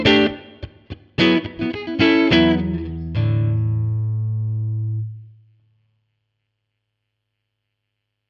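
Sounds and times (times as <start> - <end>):
clean middle tone through Fender Bassman 4x10 with three Fedora pickups: 1.2 - 5.5.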